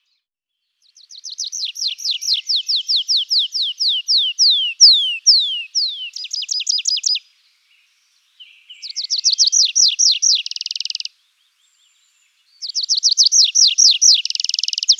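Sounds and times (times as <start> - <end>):
tree pipit singing: 1.0 - 7.2, 8.6 - 11.1, 12.6 - 14.9.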